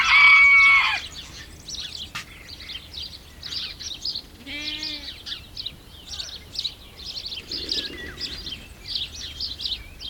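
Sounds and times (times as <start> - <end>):
goat camp countryside ambience: 0.0 - 10.0.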